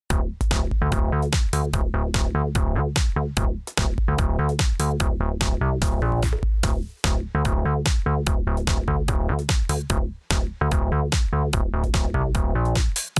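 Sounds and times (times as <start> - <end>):
VCA synthesizer groove: 0.1 - 13.0.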